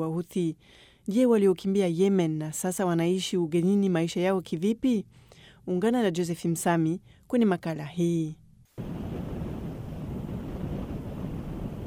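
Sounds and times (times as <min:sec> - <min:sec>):
speech: 0:00.0 - 0:08.4
boat rumble aboard a boat carrying refugees from Yemen: 0:08.8 - 0:11.8
wind noise aboard a boat: 0:08.8 - 0:11.8.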